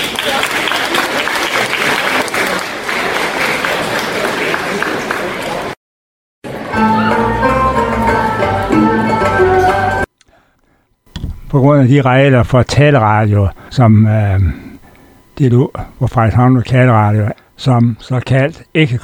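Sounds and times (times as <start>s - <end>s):
applause for three belly dancers from Aalborg: 0.0s - 5.8s
music: 6.5s - 10.1s
speech: 11.6s - 14.6s, 15.4s - 19.0s.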